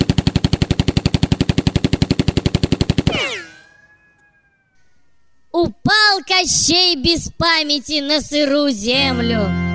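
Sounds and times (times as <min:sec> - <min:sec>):
Colt .45 gunshots: 0:00.0 - 0:04.0
speech: 0:05.6 - 0:09.6.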